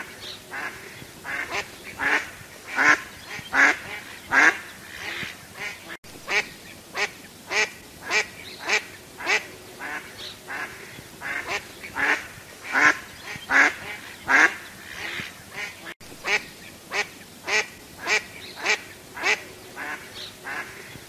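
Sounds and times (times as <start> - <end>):
duck quacking: 0.0 - 20.9.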